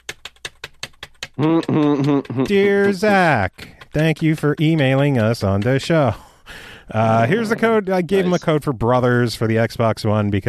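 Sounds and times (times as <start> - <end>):
keys clacking on a computer keyboard as an email is typed live: 0.0 - 6.4
speech: 1.4 - 10.4.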